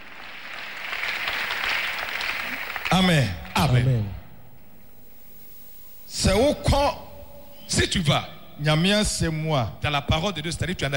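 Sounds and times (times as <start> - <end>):
church congregation applause during a sermon: 0.0 - 4.1
speech: 3.0 - 4.2, 6.1 - 7.0, 7.7 - 10.9.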